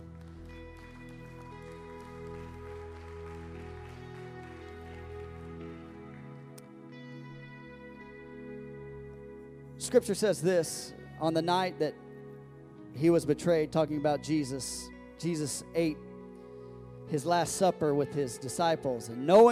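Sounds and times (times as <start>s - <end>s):
audience clapping hands in praise: 0.0s - 6.7s
speech: 9.8s - 12.0s, 13.0s - 16.1s, 17.1s - 19.5s.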